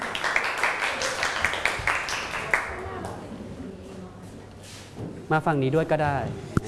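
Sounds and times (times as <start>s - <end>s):
group clapping in encouragement: 0.0s - 3.2s
speech: 5.3s - 6.5s.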